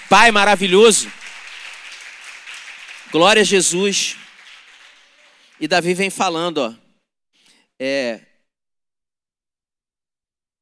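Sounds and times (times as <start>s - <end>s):
audience applause: 0.0s - 6.5s
speech: 0.1s - 1.2s, 3.1s - 4.2s, 5.6s - 6.8s, 7.8s - 8.3s.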